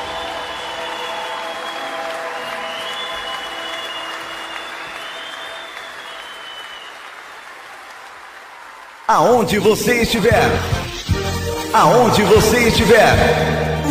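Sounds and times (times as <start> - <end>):
audience applause: 0.0 - 10.0
speech: 9.1 - 10.9, 11.7 - 13.9.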